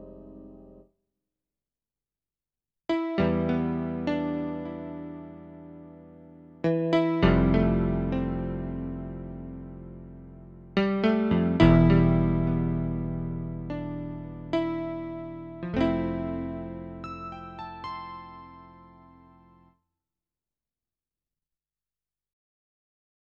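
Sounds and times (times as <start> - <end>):
PX-3 electric piano: 0.0 - 0.8, 3.0 - 19.7.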